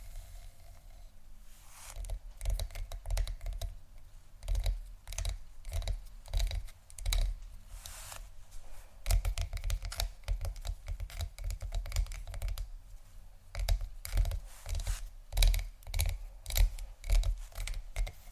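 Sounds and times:
fingers scratching and tapping on tingly textures: 0:01.9 - 0:03.8, 0:04.4 - 0:08.0, 0:09.0 - 0:12.7, 0:13.5 - 0:18.3.

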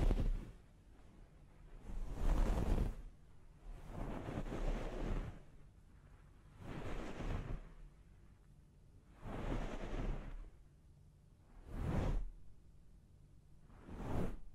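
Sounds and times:
rhythmic scalp massage during a hair wash: 0:00.0 - 0:00.6, 0:01.8 - 0:03.1, 0:03.7 - 0:05.5, 0:06.6 - 0:07.7, 0:09.2 - 0:10.4, 0:11.6 - 0:12.4, 0:13.7 - 0:14.5.

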